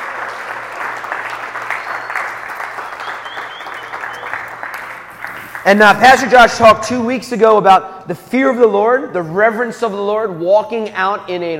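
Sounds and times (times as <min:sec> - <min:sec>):
audience clapping: 0:00.0 - 0:06.6
speech: 0:05.6 - 0:11.5.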